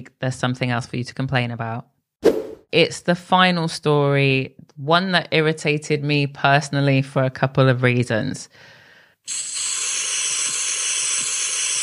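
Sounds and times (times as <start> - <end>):
speech: 0.0 - 1.9, 2.7 - 9.6
aerosol self-tan spray applied to skin: 9.3 - 11.8.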